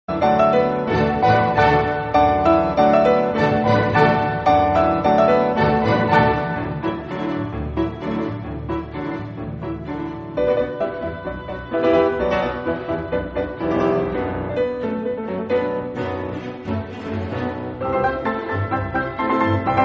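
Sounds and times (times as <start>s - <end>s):
piano: 0.1s - 19.8s.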